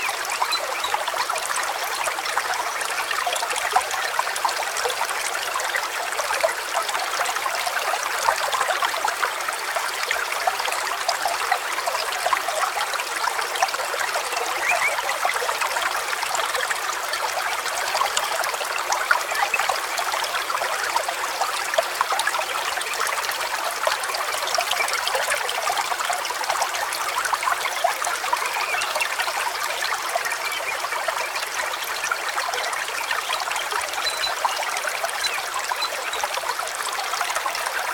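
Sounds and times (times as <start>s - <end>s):
stream: 0.0s - 37.9s.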